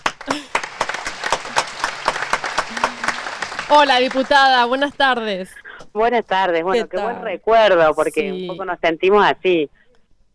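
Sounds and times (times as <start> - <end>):
audience applause: 0.0 - 5.0
speech: 3.7 - 9.8.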